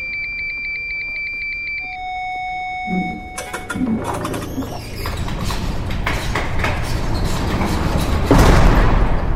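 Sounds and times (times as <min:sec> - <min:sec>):
electronic iris scanner tone: 0:00.0 - 0:05.0
sliding door whirring open: 0:03.4 - 0:09.3.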